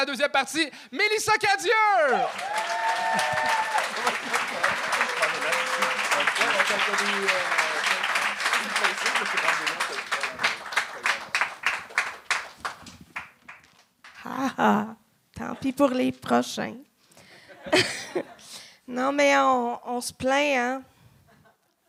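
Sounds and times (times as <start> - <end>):
speech: 0.0 - 7.9, 8.6 - 10.6, 14.3 - 16.9, 17.6 - 20.9
audience applause: 1.8 - 13.7
laughter: 2.5 - 11.3, 17.4 - 18.4.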